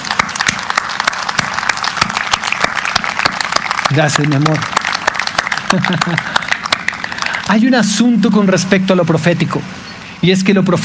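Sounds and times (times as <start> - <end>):
audience applause: 0.0 - 7.8
speech: 3.9 - 4.8, 5.7 - 6.4, 7.5 - 10.8
laughter: 5.5 - 6.8.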